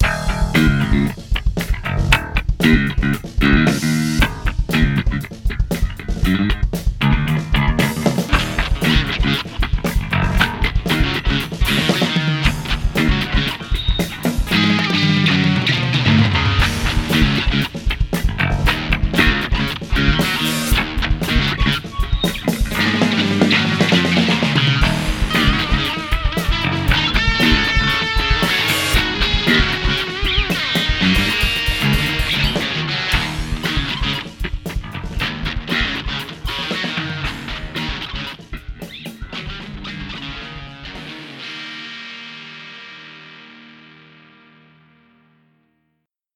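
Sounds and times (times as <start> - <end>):
funk tune: 0.0 - 43.7.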